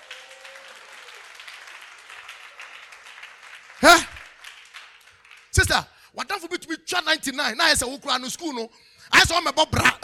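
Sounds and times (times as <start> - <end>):
audience applauding: 0.0 - 5.6
speech: 3.8 - 4.1, 5.6 - 10.0.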